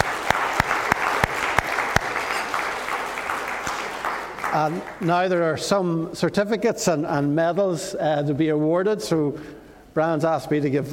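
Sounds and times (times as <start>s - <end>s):
audience applause: 0.0s - 5.1s
speech: 4.6s - 10.9s.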